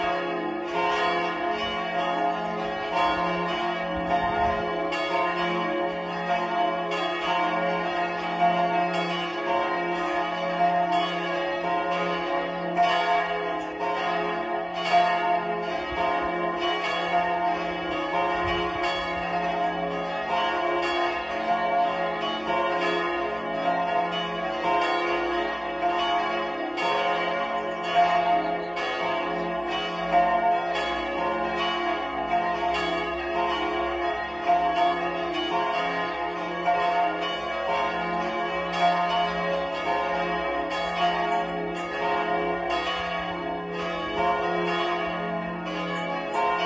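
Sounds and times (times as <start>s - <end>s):
Easter bells ringing: 0.0s - 46.6s.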